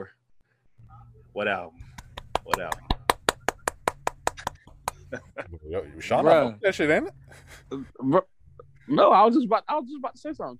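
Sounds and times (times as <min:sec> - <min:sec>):
speech: 0:01.4 - 0:01.9, 0:02.5 - 0:02.9, 0:05.1 - 0:08.3, 0:08.9 - 0:10.5
hand clapping: 0:01.8 - 0:05.2.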